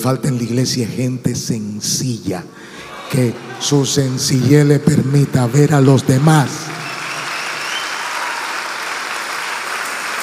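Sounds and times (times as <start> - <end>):
speech: 0.0 - 6.7
audience applause: 2.9 - 10.2.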